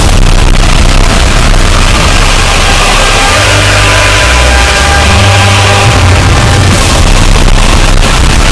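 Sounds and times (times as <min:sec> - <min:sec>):
heavily distorted national anthem: 0:00.0 - 0:08.5.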